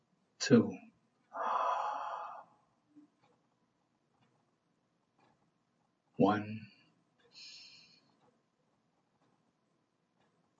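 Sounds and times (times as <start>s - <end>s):
speech: 0.4s - 0.8s, 6.2s - 6.7s
deep breath in during a guided breathing exercise: 1.3s - 2.6s, 7.4s - 8.1s.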